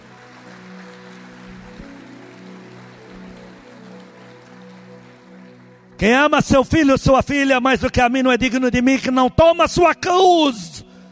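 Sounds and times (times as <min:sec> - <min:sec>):
audience applauding loudly: 0:00.0 - 0:07.0
speech: 0:06.0 - 0:10.7.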